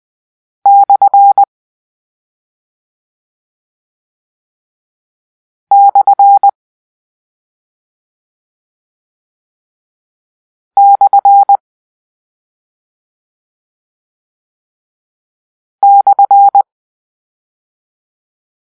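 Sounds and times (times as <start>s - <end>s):
morse code: 0.7s - 1.5s, 5.7s - 6.5s, 10.8s - 11.6s, 15.8s - 16.6s.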